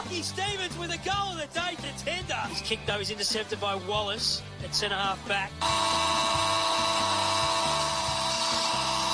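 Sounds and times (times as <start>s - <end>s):
speech: 0.1s - 6.6s
final siren at football ground: 5.6s - 9.1s.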